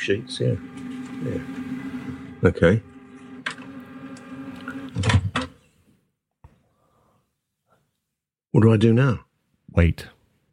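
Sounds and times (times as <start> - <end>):
speech: 0.0 - 1.7, 2.4 - 2.9, 8.6 - 10.2
inkjet printer moving heads off cleaning pad: 0.0 - 5.6.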